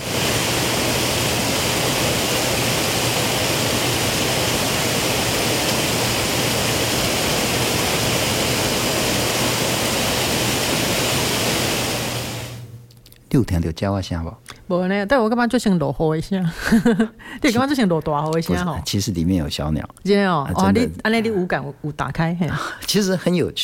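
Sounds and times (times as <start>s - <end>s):
waterfall roaring: 0.0s - 12.6s
speech: 13.4s - 23.6s.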